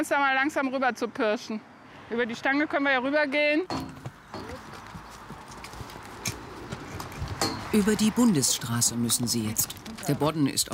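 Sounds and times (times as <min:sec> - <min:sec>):
speech: 0:00.0 - 0:03.8, 0:07.7 - 0:10.7
horses walking, hooves clopping: 0:03.7 - 0:10.7.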